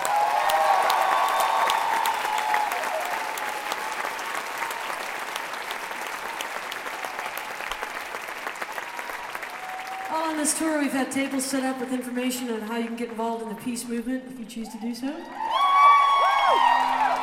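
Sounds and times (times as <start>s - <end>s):
concert audience applause: 0.0s - 10.8s, 15.2s - 17.2s
speech: 10.6s - 15.4s.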